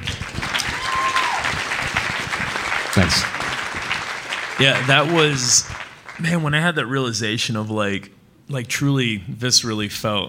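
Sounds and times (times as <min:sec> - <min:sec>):
audience clapping: 0:00.0 - 0:06.9
speech: 0:03.0 - 0:03.4, 0:04.6 - 0:10.2.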